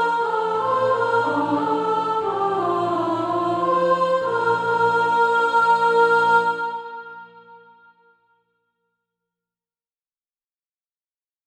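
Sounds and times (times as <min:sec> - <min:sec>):
soprano practice music: 0:00.0 - 0:07.6.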